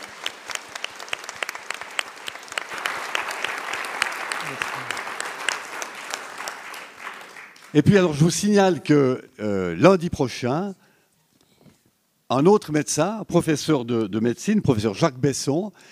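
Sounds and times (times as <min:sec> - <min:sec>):
audience applause: 0:00.0 - 0:07.9
speech: 0:07.7 - 0:10.8, 0:12.3 - 0:15.9.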